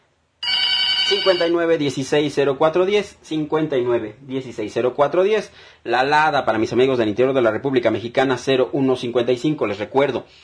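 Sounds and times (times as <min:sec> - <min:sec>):
telephone ringing in the studio booth: 0:00.4 - 0:01.7
speech: 0:01.1 - 0:10.4.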